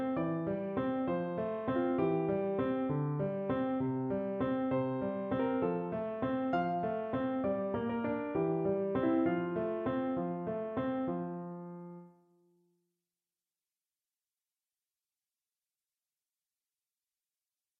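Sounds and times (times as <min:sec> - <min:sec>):
calm piano: 0:00.0 - 0:12.5.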